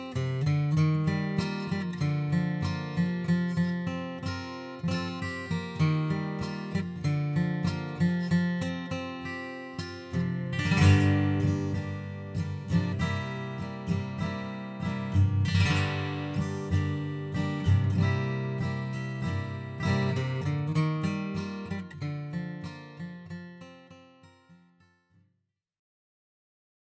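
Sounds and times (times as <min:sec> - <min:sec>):
gentle acoustic guitar through iRig Acoustic: 0:00.0 - 0:24.8.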